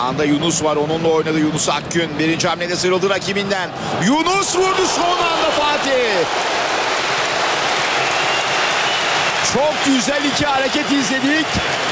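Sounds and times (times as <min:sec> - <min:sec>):
speech: 0:00.0 - 0:06.8, 0:09.4 - 0:11.9
stadium crowd applauding at a Super Cup football match: 0:04.0 - 0:11.9.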